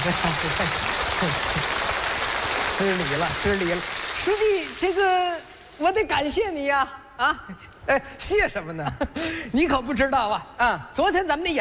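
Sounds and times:
speech: 0.0s - 1.9s, 2.8s - 11.5s
audience applauding comedians at a Chinese crosstalk comedy show: 0.0s - 5.8s.

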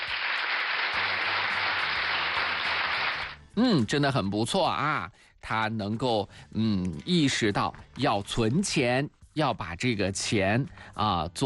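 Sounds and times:
applause: 0.0s - 3.4s
speech: 3.6s - 11.4s.

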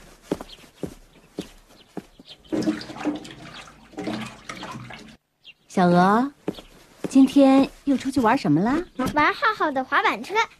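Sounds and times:
footsteps: 0.0s - 3.3s, 6.4s - 9.4s
hands washing under running water: 2.5s - 5.2s
speech: 5.8s - 6.4s, 7.1s - 10.5s.

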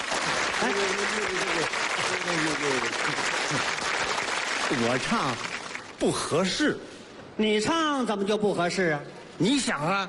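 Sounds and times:
audience applause: 0.0s - 6.0s
speech: 0.7s - 3.8s, 4.7s - 10.0s.

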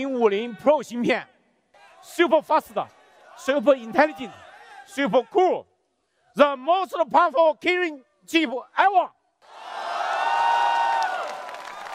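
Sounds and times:
speech: 0.0s - 1.3s, 2.0s - 5.7s, 6.4s - 9.2s
crowd cheering at a Huawei launch event: 9.4s - 11.9s.

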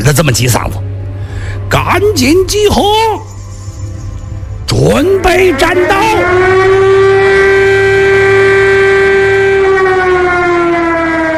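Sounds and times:
speech: 0.1s - 0.9s, 1.7s - 3.3s, 4.7s - 7.0s
air raid alarm siren: 3.9s - 11.3s.

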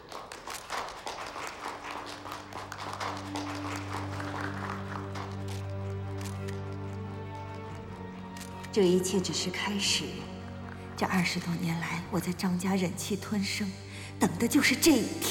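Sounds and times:
applause: 0.0s - 9.6s
speech: 8.7s - 10.4s, 11.0s - 15.2s.

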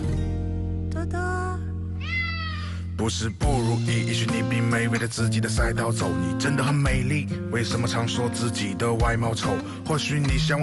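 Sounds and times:
musical backing: 0.0s - 10.6s
speech: 1.0s - 1.7s, 3.0s - 10.6s
cat meowing: 2.0s - 2.7s.

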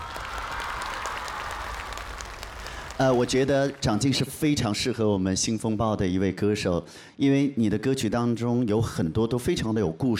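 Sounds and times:
audience applause: 0.0s - 4.3s
speech: 3.0s - 10.1s.

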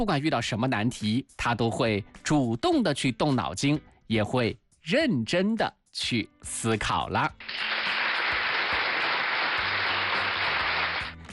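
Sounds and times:
speech: 0.0s - 8.0s
applause: 7.4s - 11.2s.

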